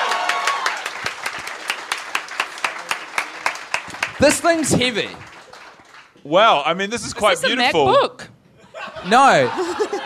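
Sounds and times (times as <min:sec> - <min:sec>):
applause: 0:00.0 - 0:06.2
speech: 0:04.2 - 0:05.3, 0:06.2 - 0:08.2, 0:09.0 - 0:09.6
laughter: 0:08.6 - 0:10.0.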